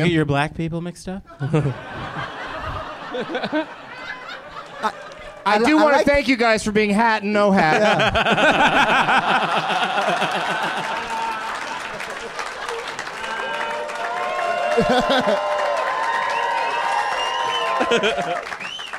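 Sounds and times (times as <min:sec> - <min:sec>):
speech: 0:00.0 - 0:02.3, 0:03.1 - 0:03.8, 0:04.8 - 0:11.0, 0:14.8 - 0:15.5, 0:17.8 - 0:18.5
laughter: 0:01.3 - 0:05.4, 0:07.6 - 0:13.0, 0:14.7 - 0:15.6, 0:17.7 - 0:18.6
live audience applause: 0:01.8 - 0:05.8, 0:08.0 - 0:18.9.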